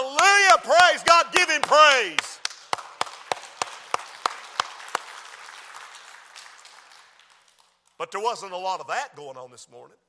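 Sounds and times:
audience clapping hands in praise: 0.0 - 8.0
speech: 0.6 - 2.3, 8.0 - 10.0.

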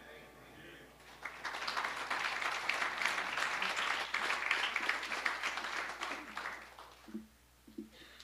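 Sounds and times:
audience applause: 1.0 - 7.2.

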